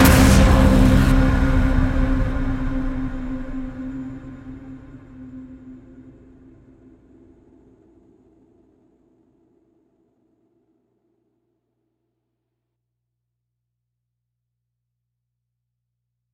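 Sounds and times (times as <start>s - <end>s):
punch impact: 0.0s - 4.9s.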